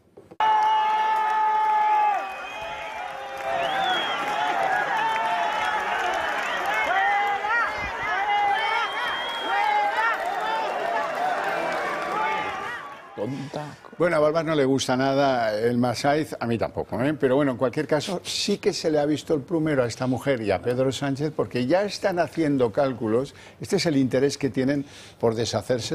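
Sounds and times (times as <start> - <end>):
crowd shouting and jeering in chants: 0.4 - 14.0
scattered cheers: 0.4 - 14.0
shrill whistle: 3.5 - 4.4, 8.6 - 9.8
speech: 13.6 - 25.9.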